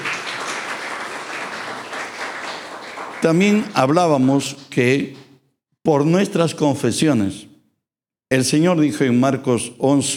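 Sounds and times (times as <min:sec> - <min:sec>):
audience applause: 0:00.0 - 0:04.4
speech: 0:03.2 - 0:05.2, 0:05.8 - 0:07.5, 0:08.3 - 0:10.1.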